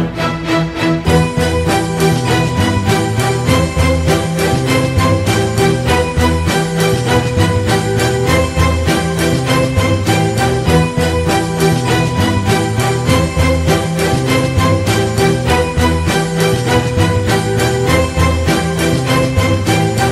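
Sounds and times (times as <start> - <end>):
dizi flute music: 0.2 - 20.0.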